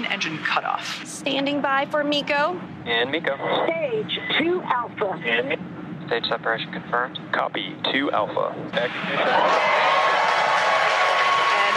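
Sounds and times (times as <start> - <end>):
speech: 0.1 - 10.1
mission control staff cheering: 8.8 - 11.7.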